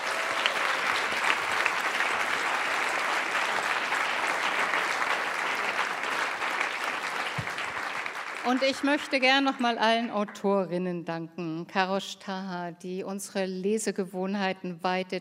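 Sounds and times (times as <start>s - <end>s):
audience applause for the behind-the-scenes crew: 0.0s - 10.1s
speech: 8.5s - 15.1s.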